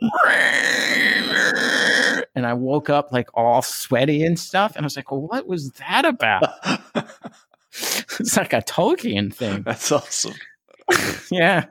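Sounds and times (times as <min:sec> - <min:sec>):
person imitating a shrill scream: 0:00.0 - 0:02.3
speech: 0:02.5 - 0:11.6
laughter: 0:06.4 - 0:07.5.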